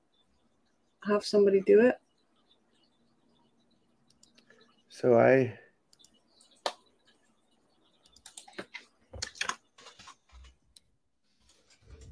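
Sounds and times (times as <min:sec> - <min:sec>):
speech: 0:01.0 - 0:02.0, 0:05.0 - 0:05.6
keyboard typing a slash command: 0:05.9 - 0:12.1.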